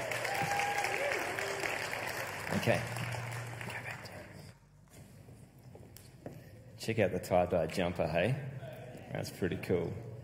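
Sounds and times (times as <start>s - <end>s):
audience applause: 0.0s - 4.1s
speech: 2.5s - 3.0s, 6.9s - 10.0s.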